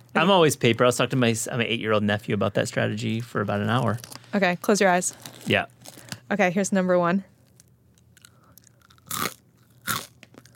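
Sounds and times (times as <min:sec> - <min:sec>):
speech: 0:00.2 - 0:07.3
crunching on pumpernickel: 0:08.0 - 0:10.5.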